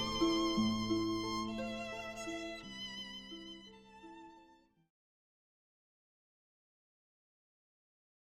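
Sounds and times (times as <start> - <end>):
harp: 0.0 - 4.7
violin: 0.0 - 4.8.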